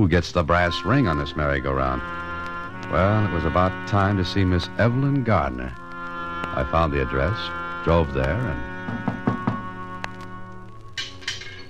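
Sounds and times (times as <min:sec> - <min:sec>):
speech: 0:00.0 - 0:05.8, 0:06.4 - 0:09.0
steady music: 0:00.0 - 0:11.6
knocking on a front door: 0:08.8 - 0:09.6.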